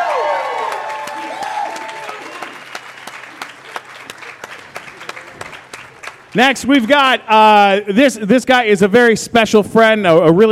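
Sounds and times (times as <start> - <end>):
audience applause: 0.0 - 7.2
speech: 6.3 - 10.5.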